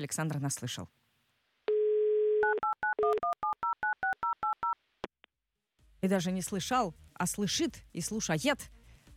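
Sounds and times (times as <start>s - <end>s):
speech: 0.0s - 1.0s, 6.0s - 8.8s
phone dial tone: 1.7s - 4.8s.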